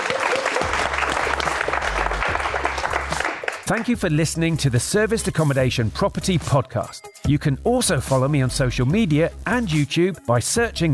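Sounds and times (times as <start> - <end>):
audience applause: 0.0 - 3.9
speech: 3.7 - 10.9.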